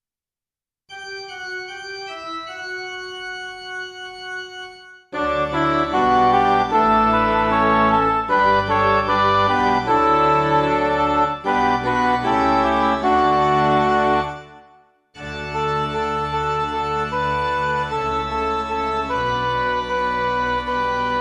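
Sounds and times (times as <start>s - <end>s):
MIDI music: 4.4s - 21.1s.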